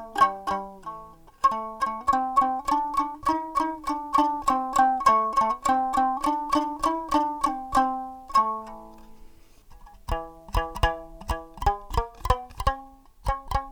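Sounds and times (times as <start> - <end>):
homemade fish tin banjo: 0.0 - 13.6.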